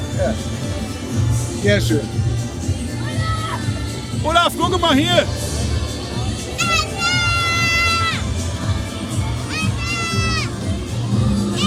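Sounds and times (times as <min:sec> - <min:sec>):
crowd murmur: 0:00.0 - 0:11.6
speech: 0:00.2 - 0:00.6, 0:01.6 - 0:02.3, 0:04.2 - 0:05.4
excited little girls shrieking and shouting: 0:06.6 - 0:08.4, 0:09.3 - 0:10.6.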